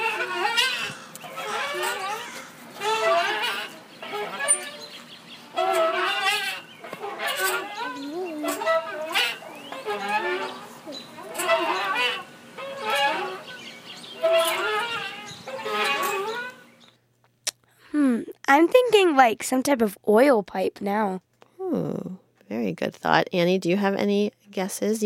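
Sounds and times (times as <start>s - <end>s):
creaky rusty old playground swing squeaking: 0.0s - 16.9s
speech: 19.2s - 25.0s.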